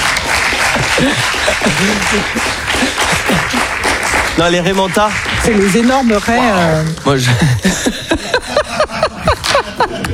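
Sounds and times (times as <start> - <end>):
applause: 0.0 - 7.0
laughter: 0.6 - 3.9, 7.2 - 10.1
speech: 1.0 - 3.6, 4.4 - 8.6.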